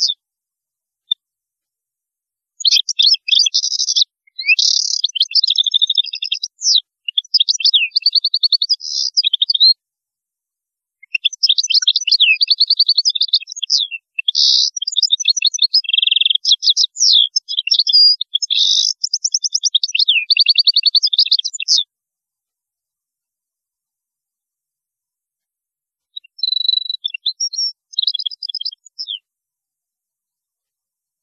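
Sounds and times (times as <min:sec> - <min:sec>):
European goldfinch singing: 0:02.6 - 0:09.7, 0:11.0 - 0:21.9, 0:26.2 - 0:29.2.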